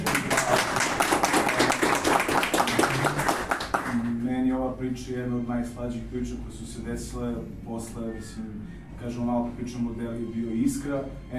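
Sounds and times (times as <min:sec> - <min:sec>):
applause for the host at a People Hub gathering: 0:00.0 - 0:04.1
speech: 0:04.8 - 0:11.3.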